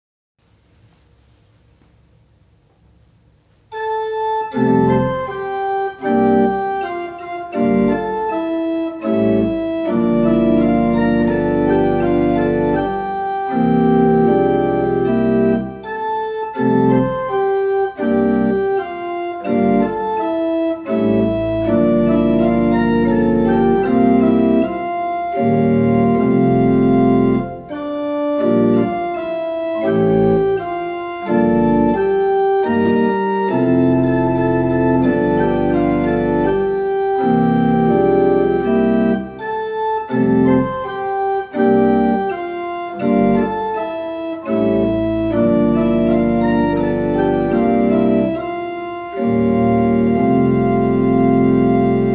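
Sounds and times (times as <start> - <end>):
organ playing a theme: 3.7 - 52.1.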